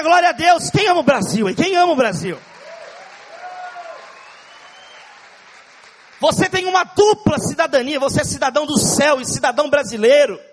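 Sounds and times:
speech: 0.0 - 2.5, 6.2 - 10.5
audience applause: 2.4 - 6.7.

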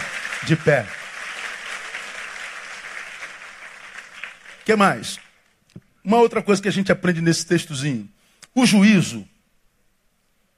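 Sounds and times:
crowd applauding: 0.0 - 5.4
speech: 0.4 - 1.0, 4.7 - 5.3, 6.0 - 9.3.

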